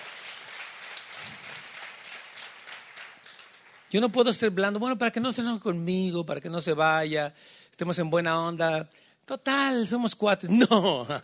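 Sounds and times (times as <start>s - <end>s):
audience applause: 0.0s - 4.0s
speech: 3.9s - 11.2s.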